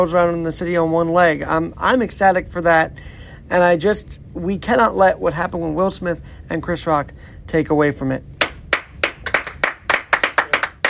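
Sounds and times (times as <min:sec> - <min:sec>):
speech: 0:00.0 - 0:08.3
studio audience clapping: 0:08.4 - 0:10.8.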